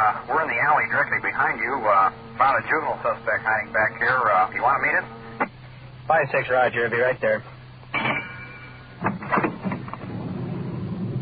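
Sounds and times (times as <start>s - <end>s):
speech: 0.0s - 5.2s, 6.1s - 7.6s
car engine rumbling: 0.0s - 11.2s
car clunks and rattles bouncing over a bumpy alley surface: 7.9s - 11.2s.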